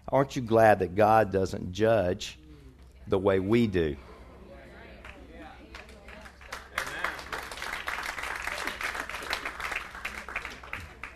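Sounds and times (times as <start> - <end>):
speech: 0.1 - 2.4, 3.1 - 4.1
soft polite golf clap from a small group: 5.0 - 11.1.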